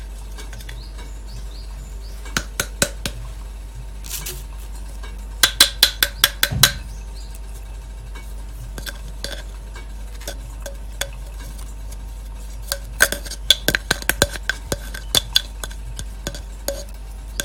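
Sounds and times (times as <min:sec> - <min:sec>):
mocha blend coffee beans crackling while roasting: 0:00.0 - 0:17.4
steady low hum: 0:00.0 - 0:17.4.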